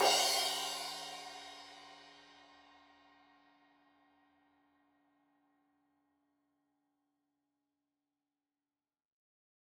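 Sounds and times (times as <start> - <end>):
15 inch crash cymbal edge hit: 0.0 - 2.2.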